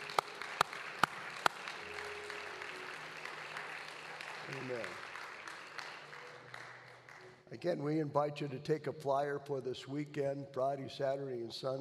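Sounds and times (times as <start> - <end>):
audience clapping hands in unison rhythm: 0.0 - 7.7
speech: 4.5 - 5.1, 7.5 - 11.7.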